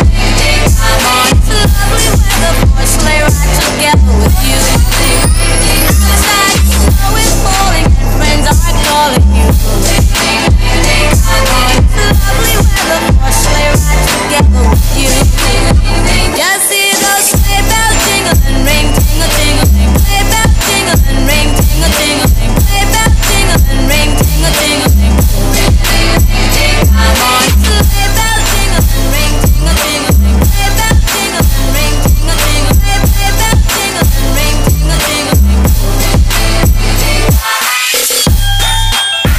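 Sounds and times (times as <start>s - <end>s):
trap remix: 0.0s - 39.3s
sleigh bells ringing: 4.3s - 7.4s.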